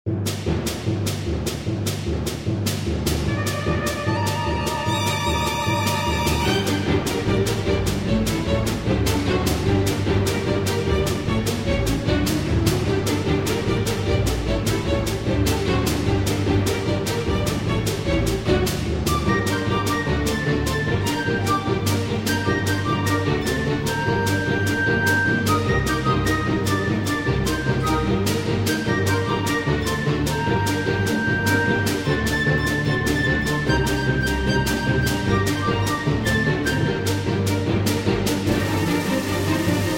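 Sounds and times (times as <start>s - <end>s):
cinematic orchestral music: 0.1s - 39.9s.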